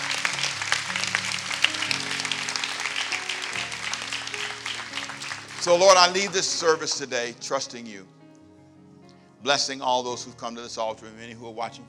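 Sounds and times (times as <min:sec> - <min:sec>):
audience clapping hands: 0:00.0 - 0:07.2
speech: 0:05.6 - 0:08.2, 0:09.4 - 0:11.8.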